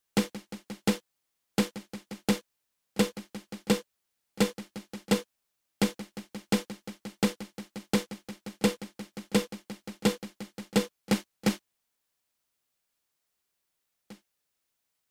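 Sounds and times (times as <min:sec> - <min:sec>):
flam paradiddle drum rudiment: 0:00.2 - 0:01.0, 0:01.6 - 0:02.4, 0:03.0 - 0:03.8, 0:04.4 - 0:11.6.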